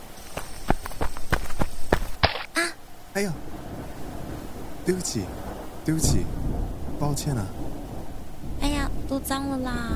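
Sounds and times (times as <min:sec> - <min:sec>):
hurried footsteps running: 0:00.2 - 0:02.5
speech: 0:03.2 - 0:03.5, 0:04.9 - 0:07.7, 0:09.1 - 0:09.9.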